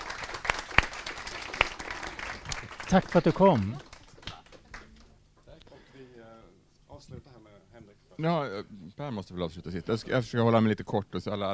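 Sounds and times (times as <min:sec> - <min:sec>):
audience applause: 0:00.0 - 0:05.0
speech: 0:02.9 - 0:03.9, 0:08.2 - 0:11.5.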